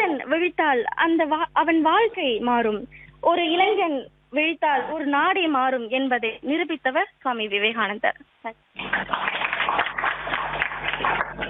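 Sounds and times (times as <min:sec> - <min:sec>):
speech: 0:00.3 - 0:10.0
students applauding: 0:08.8 - 0:11.4.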